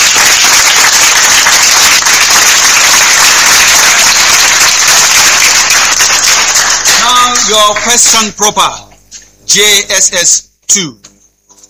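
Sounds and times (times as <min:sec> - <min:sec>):
round of applause: 0:00.0 - 0:08.2
speech: 0:07.6 - 0:08.9, 0:09.5 - 0:11.0.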